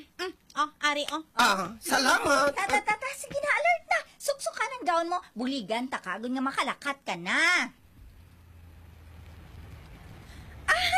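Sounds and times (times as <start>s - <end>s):
speech: 0.2s - 3.7s, 4.3s - 7.8s
road noise: 7.8s - 10.9s
taxi engine rumble pulling up to take a bride to church: 7.9s - 10.9s.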